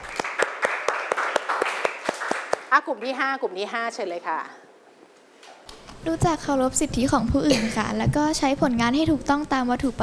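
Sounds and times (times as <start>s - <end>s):
students clapping in a classroom: 0.0s - 3.4s
speech: 2.7s - 4.7s, 6.0s - 10.0s.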